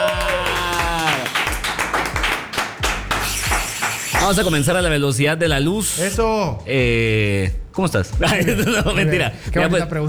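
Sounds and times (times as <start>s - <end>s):
clapping and cheering: 0.0s - 4.5s
speech: 4.3s - 10.0s
laughter: 8.2s - 9.4s.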